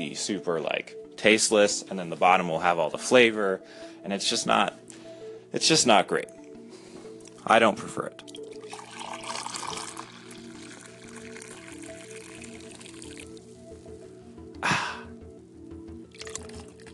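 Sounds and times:
speech: 0.0 - 6.4, 7.4 - 8.4
coffee dripping while brewing: 8.2 - 13.5, 16.1 - 16.9.

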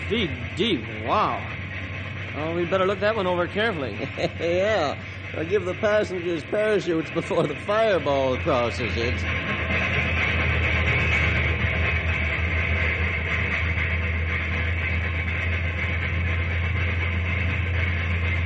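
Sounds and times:
steam locomotive climbing a grade: 0.0 - 18.4
speech: 0.1 - 1.6, 2.4 - 9.8
laughter: 3.5 - 10.2.

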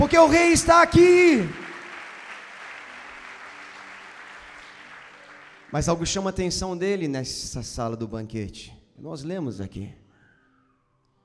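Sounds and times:
speech: 0.0 - 1.6, 5.7 - 10.0
audience applause: 0.0 - 6.0.

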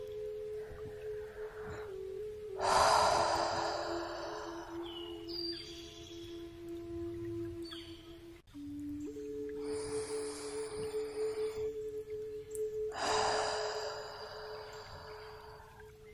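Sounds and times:
soft sustained musical drone: 0.0 - 16.1
deep breaths in through the nose and out through the mouth: 0.6 - 5.3, 9.6 - 11.8, 12.9 - 16.0.

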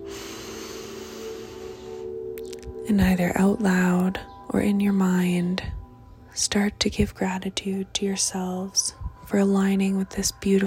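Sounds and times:
deep breath in during a guided healing meditation: 0.0 - 2.2
speech: 2.9 - 5.8, 6.4 - 10.6.

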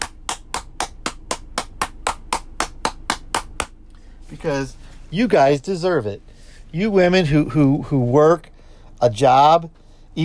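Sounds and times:
one person clapping hands: 0.0 - 3.8
speech: 4.3 - 10.2.

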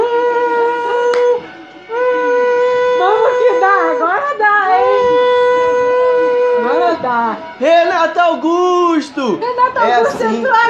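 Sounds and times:
vuvuzela: 0.0 - 7.7
speech: 7.3 - 10.6.

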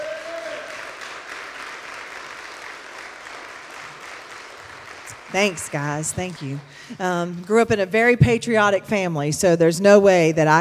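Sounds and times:
audience applause: 0.0 - 6.8
speech: 5.3 - 10.5.

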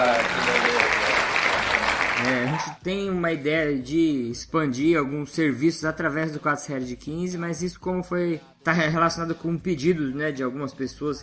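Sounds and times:
audience applause: 0.0 - 2.8
speech: 2.2 - 11.2.

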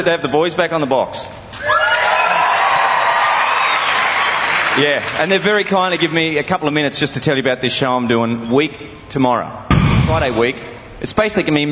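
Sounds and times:
speech: 0.0 - 2.2, 4.8 - 11.6
studio crowd at a 2005 football TV show cheering and whooping: 1.5 - 5.1.

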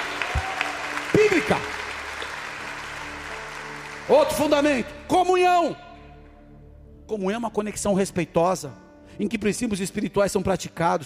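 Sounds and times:
audience applauding: 0.0 - 4.9
speech: 1.5 - 1.8, 4.1 - 5.8, 7.1 - 11.0.

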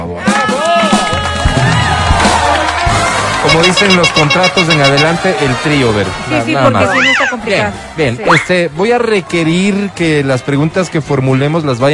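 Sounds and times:
crowd applause: 0.3 - 6.3
speech: 3.5 - 11.9.

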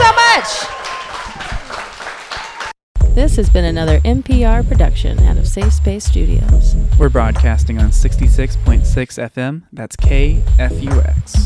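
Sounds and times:
crowd applause: 0.0 - 2.8
speech: 3.2 - 11.4.

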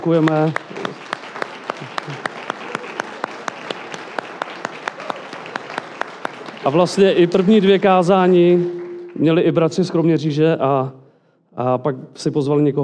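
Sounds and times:
speech: 0.0 - 0.7, 6.6 - 11.0, 11.6 - 12.8
audience applause: 0.0 - 9.3.

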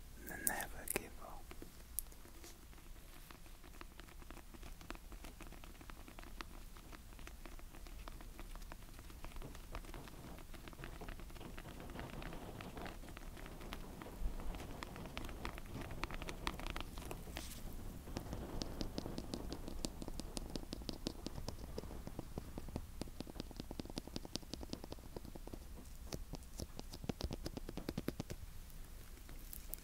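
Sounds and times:
tapping and scratching: 0.3 - 29.8.

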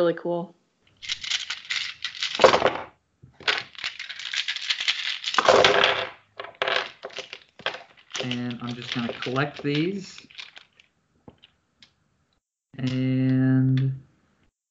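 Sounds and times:
speech: 0.0 - 1.2, 8.3 - 10.4, 12.8 - 13.1
dice clattering on a hard surface: 1.0 - 11.5, 12.8 - 13.4.

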